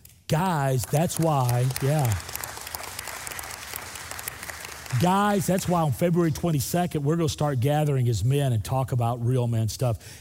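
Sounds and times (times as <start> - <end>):
speech: 0.3 - 2.4, 4.9 - 10.1
lone person clapping slowly: 0.8 - 5.8.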